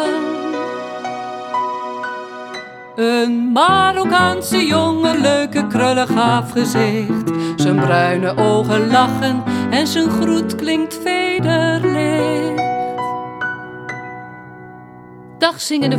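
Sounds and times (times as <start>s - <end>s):
woman singing: 0.0s - 1.0s, 2.9s - 13.2s, 15.4s - 15.9s.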